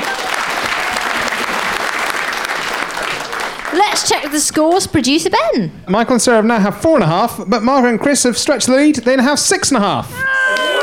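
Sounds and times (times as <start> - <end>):
audience applause: 0.0 - 4.8
speech: 3.8 - 10.3.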